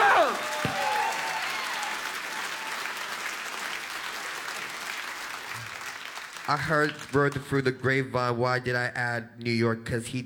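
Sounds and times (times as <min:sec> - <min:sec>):
crowd cheering with shouts and whoops: 0:00.0 - 0:04.7
crowd clapping: 0:00.0 - 0:07.9
speech: 0:06.5 - 0:10.2.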